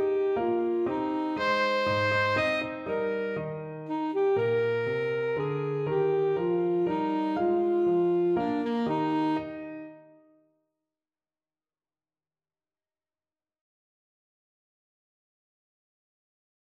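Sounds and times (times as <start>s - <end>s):
saxophone playing a dance piece: 0.0s - 10.1s.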